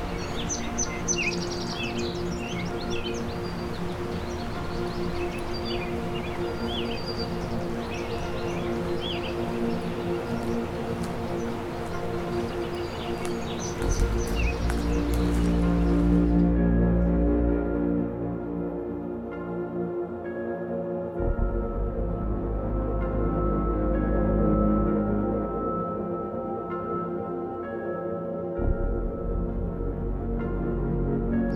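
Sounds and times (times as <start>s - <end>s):
birds chirping: 0.0s - 17.6s
palm warbler song: 0.0s - 31.5s.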